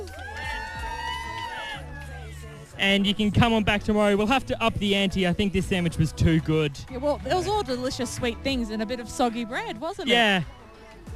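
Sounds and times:
audience cheering and whooping: 0.0s - 2.5s
speech: 2.8s - 10.6s.

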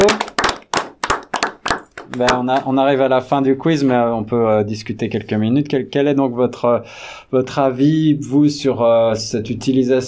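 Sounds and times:
group clapping: 0.0s - 2.6s
speech: 2.2s - 10.0s.

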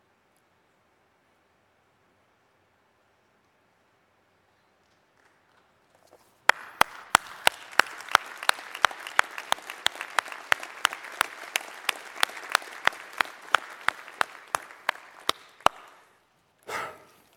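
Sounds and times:
audience applause: 6.5s - 16.2s
rhythmic sharp claps: 6.5s - 16.2s.

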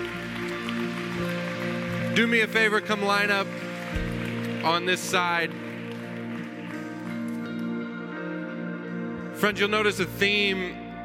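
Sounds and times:
audience applause: 0.0s - 7.8s
speech: 2.2s - 4.0s, 4.6s - 5.6s, 9.4s - 10.8s.

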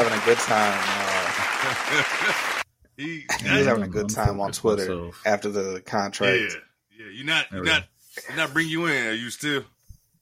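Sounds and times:
round of applause: 0.0s - 2.6s
speech: 0.2s - 1.0s, 1.6s - 9.7s.

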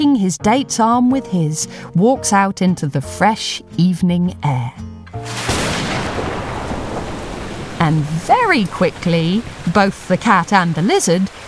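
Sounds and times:
speech: 0.0s - 5.5s, 7.8s - 11.4s
rain: 5.2s - 11.4s.

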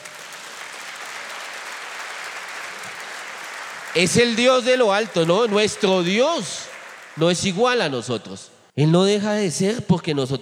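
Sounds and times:
audience applause: 0.0s - 7.7s
speech: 4.0s - 10.4s.

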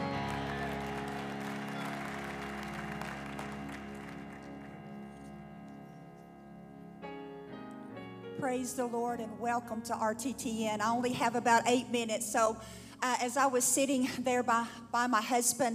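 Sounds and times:
audience clapping: 0.0s - 5.5s
sustained organ chords: 0.0s - 12.5s
speech: 8.4s - 15.7s.

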